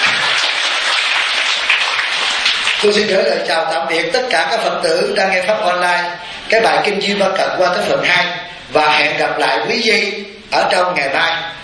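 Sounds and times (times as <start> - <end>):
listeners at a Buddhist dharma talk clapping: 0.0 - 3.2
speech: 2.8 - 11.6.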